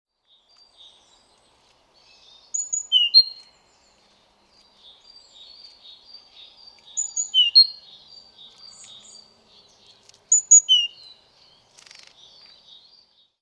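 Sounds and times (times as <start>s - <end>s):
great tit sharp calls: 2.0s - 3.5s, 5.3s - 12.8s.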